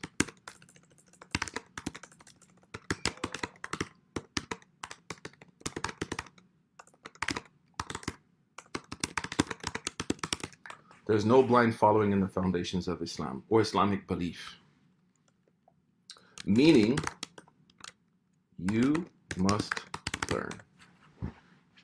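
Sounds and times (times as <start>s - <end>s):
typing on a computer keyboard: 0.0s - 10.8s, 16.2s - 18.0s, 18.6s - 20.6s
speech: 11.1s - 14.6s, 16.5s - 17.2s, 19.6s - 19.8s.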